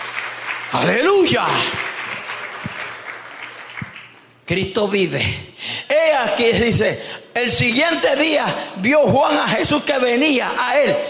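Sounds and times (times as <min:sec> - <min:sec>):
church congregation applauding during a Spanish-language sermon: 0:00.0 - 0:04.4
speech: 0:00.7 - 0:01.9, 0:04.5 - 0:11.0.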